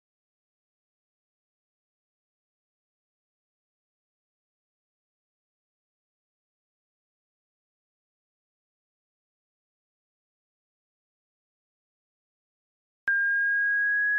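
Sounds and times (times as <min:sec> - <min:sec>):
sine tone: 0:13.1 - 0:14.1.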